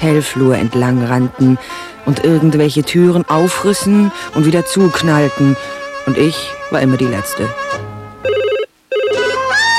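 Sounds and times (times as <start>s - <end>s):
speech: 0.0s - 7.8s
telephone ringing: 8.2s - 9.7s.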